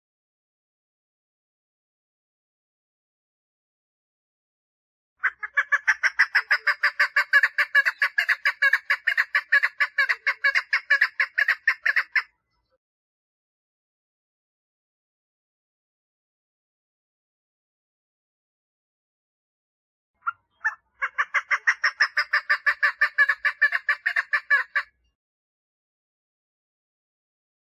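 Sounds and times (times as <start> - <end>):
partridge clucking calls: 5.2 - 12.3, 20.2 - 24.9.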